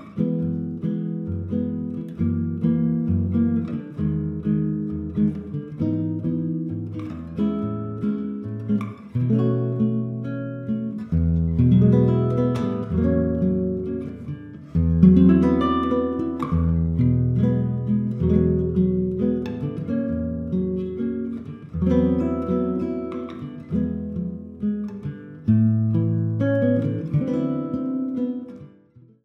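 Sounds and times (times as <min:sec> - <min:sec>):
ballad guitar: 0:00.0 - 0:29.2.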